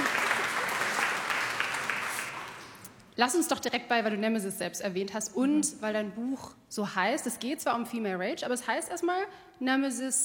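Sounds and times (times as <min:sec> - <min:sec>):
audience clapping loudly: 0:00.0 - 0:02.9
speech: 0:03.2 - 0:10.2.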